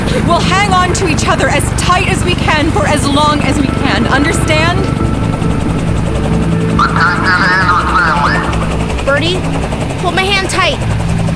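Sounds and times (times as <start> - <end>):
helicopter landing: 0.0 - 11.3
speech: 0.2 - 5.1, 9.1 - 11.0.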